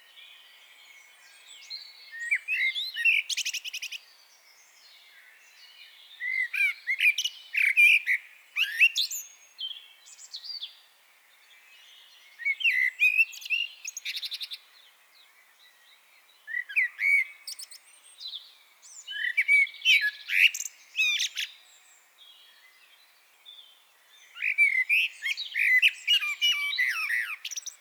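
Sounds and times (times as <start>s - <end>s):
Eurasian blackbird singing: 0.0s - 10.8s, 11.4s - 27.7s.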